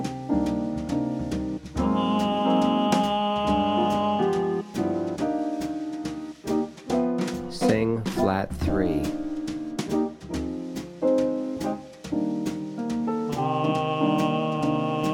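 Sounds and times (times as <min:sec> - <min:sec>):
C minor jazz blues without piano for ear training: 0:00.0 - 0:15.1.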